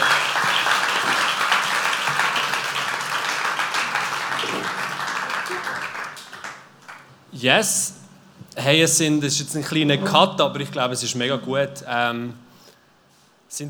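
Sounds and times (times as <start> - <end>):
crowd applause: 0.0 - 7.2
speech: 7.4 - 8.0, 8.6 - 12.4.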